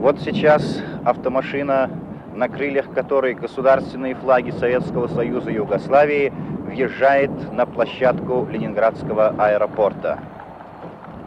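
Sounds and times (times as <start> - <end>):
speech: 0.1 - 10.4
large crowd warmly cheering and applauding: 10.0 - 11.2.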